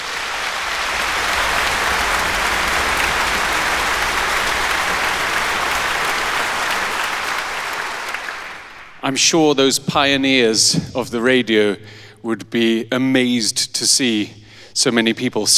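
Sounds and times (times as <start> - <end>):
large audience applause: 0.0 - 9.3
speech: 9.1 - 15.5.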